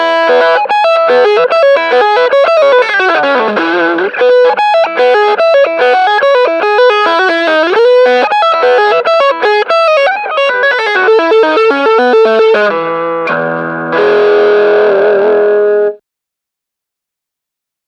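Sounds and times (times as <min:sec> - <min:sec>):
open E string with mid distortion: 0:00.1 - 0:16.0.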